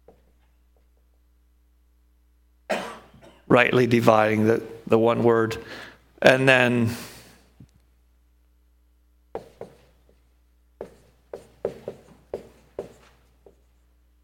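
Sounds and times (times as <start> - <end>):
speech: 3.5 - 7.1
person writing by hand: 9.4 - 10.2, 10.8 - 13.9.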